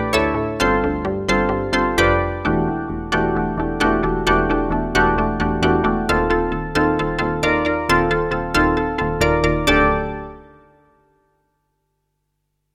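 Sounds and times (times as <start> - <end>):
organ bells: 0.0 - 10.7.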